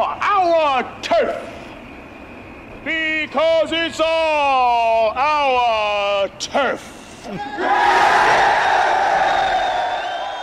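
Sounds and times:
speech: 0:00.0 - 0:01.6, 0:02.8 - 0:09.3
gang crowd cheering and shouting in film scene: 0:07.4 - 0:10.4.

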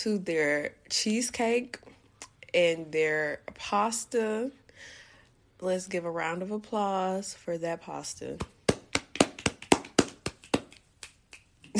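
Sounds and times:
speech: 0:00.0 - 0:01.9, 0:02.5 - 0:05.0, 0:05.6 - 0:08.6
finger snapping: 0:09.2 - 0:11.7.

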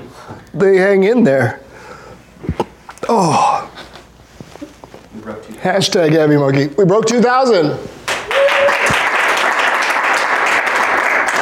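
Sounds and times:
speech: 0:00.6 - 0:01.6, 0:03.1 - 0:03.7, 0:05.5 - 0:08.0
large crowd applauding: 0:08.1 - 0:11.3.

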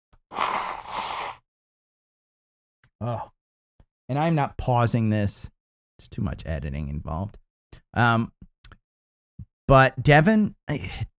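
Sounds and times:
nose blowing: 0:00.3 - 0:01.4
speech: 0:03.0 - 0:03.4, 0:04.1 - 0:08.4, 0:09.7 - 0:11.1.

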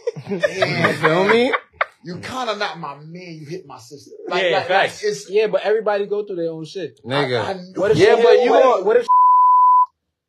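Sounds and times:
laughter: 0:00.0 - 0:02.5
speech: 0:00.2 - 0:09.2
high-pitched censor bleep over profanity: 0:09.1 - 0:09.9.

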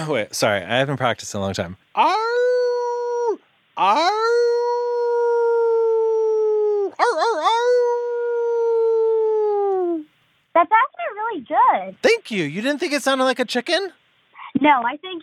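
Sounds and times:
speech: 0:00.0 - 0:02.4, 0:03.8 - 0:04.4, 0:11.4 - 0:14.0, 0:14.6 - 0:15.2
person imitating a wolf howl: 0:02.0 - 0:10.1.

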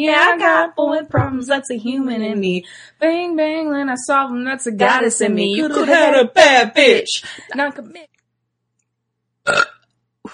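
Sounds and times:
speech: 0:00.0 - 0:08.1, 0:09.5 - 0:10.3
burp: 0:09.4 - 0:09.9.

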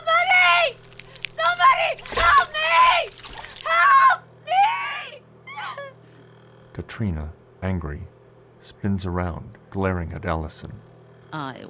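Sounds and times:
water splashing and sloshing in a bathtub: 0:00.1 - 0:04.0
whimpering cries: 0:04.6 - 0:06.0
speech: 0:06.8 - 0:11.6.

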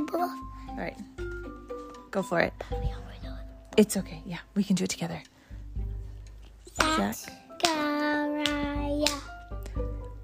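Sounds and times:
speech: 0:00.2 - 0:03.1, 0:03.8 - 0:05.3, 0:07.0 - 0:07.4
hand claps counting syllables: 0:06.8 - 0:09.8.

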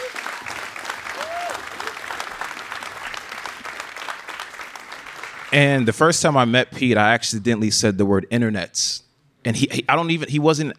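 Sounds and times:
audience applause: 0:00.0 - 0:05.6
speech: 0:05.5 - 0:10.7.

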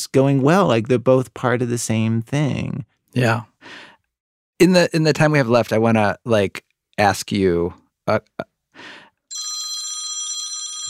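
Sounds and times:
speech: 0:00.0 - 0:03.9, 0:04.6 - 0:09.0
computer ringing like a phone: 0:09.3 - 0:10.8.

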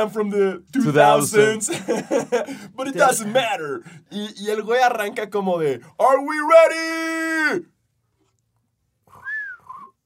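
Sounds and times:
speech: 0:00.0 - 0:07.7
laughter: 0:01.4 - 0:03.8
person whistling a tumbleweed sound effect: 0:09.1 - 0:10.0.

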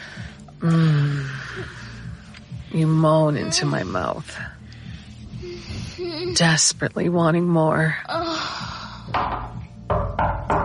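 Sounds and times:
speech: 0:00.6 - 0:01.0, 0:02.7 - 0:04.6, 0:05.9 - 0:09.4
knocking on a bathroom door: 0:09.1 - 0:10.6.

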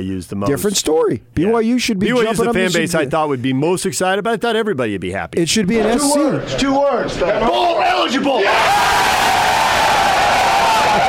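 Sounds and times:
speech: 0:00.0 - 0:09.4
hosts yelling in celebration: 0:07.3 - 0:11.0.

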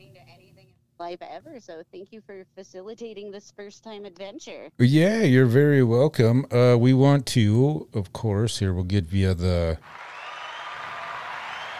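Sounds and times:
speech: 0:01.0 - 0:10.0
studio applause sound effect: 0:09.8 - 0:11.7.

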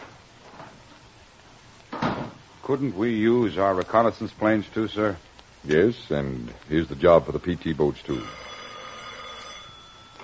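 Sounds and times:
speech: 0:02.7 - 0:08.4
telephone bell ringing with a bright metallic jangle: 0:08.1 - 0:10.2.

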